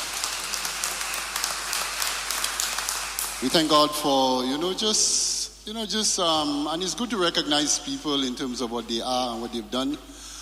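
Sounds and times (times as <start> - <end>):
round of applause: 0.0 - 3.9
speech: 3.4 - 10.1.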